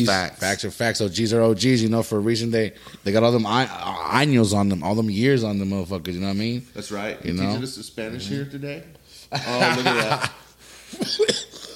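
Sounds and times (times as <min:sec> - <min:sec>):
speech: 0:00.0 - 0:11.5
laughter: 0:09.3 - 0:11.2
cough: 0:11.0 - 0:11.7.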